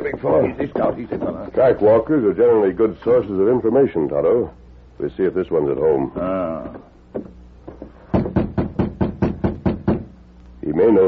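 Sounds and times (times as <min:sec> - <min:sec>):
speech: 0:00.2 - 0:07.4, 0:10.7 - 0:11.0
rapping on a wooden cabin door: 0:07.1 - 0:10.1.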